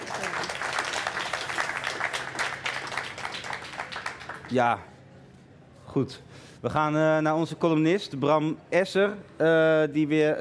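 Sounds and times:
audience applause: 0.0s - 4.6s
speech: 4.5s - 4.9s, 5.9s - 10.3s.

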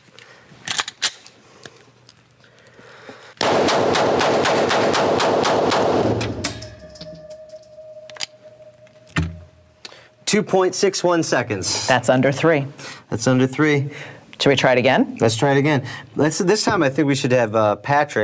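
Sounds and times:
gun handling clicks and noises: 0.6s - 1.8s
gun firing a rapid series of loud shots: 3.4s - 6.6s
speech: 10.3s - 18.2s.

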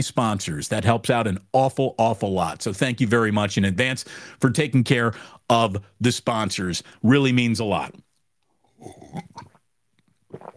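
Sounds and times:
speech: 0.0s - 8.0s, 8.8s - 9.5s
sipping hot coffee: 8.8s - 10.5s.

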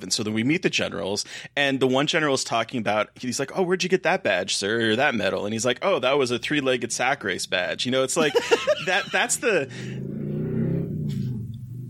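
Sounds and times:
speech: 0.0s - 10.1s
laughter: 8.2s - 9.8s
passing car rumble: 9.6s - 11.8s.

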